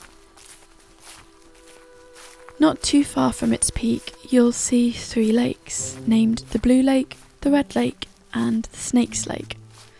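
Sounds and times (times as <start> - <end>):
walking boots on the ranger path up Mount Snowdon: 0.0 - 9.9
speech: 2.6 - 9.6.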